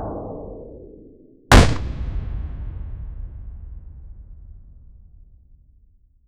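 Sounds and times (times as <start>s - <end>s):
meteor whoosh: 1.5s - 5.4s.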